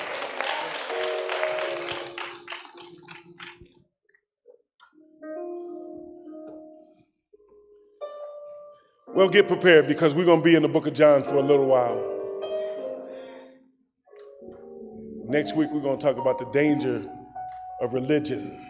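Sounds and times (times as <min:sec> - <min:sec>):
organ chords: 0:00.0 - 0:03.8, 0:04.8 - 0:18.6
audience clapping in praise: 0:00.0 - 0:03.9
speech: 0:09.2 - 0:12.2, 0:15.3 - 0:17.2, 0:17.8 - 0:18.6.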